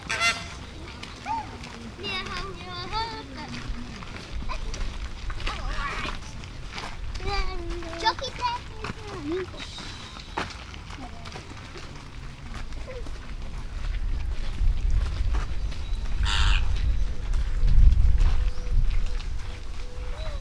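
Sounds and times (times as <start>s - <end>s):
American flamingo and Chilean flamingo calling in a zoo: 0.0s - 2.0s, 16.2s - 17.3s
wind: 0.0s - 20.3s.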